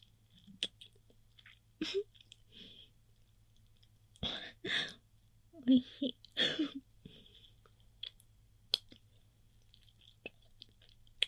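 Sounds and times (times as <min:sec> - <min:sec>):
wet mouth clicks and smacking as food is sucked: 0:00.0 - 0:02.5, 0:07.6 - 0:11.2
low steady hum: 0:00.0 - 0:11.2
speech: 0:05.7 - 0:05.9.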